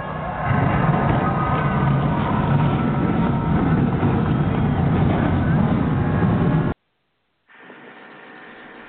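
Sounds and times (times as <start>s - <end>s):
race car engines starting at a stock car race: 0.0s - 6.8s.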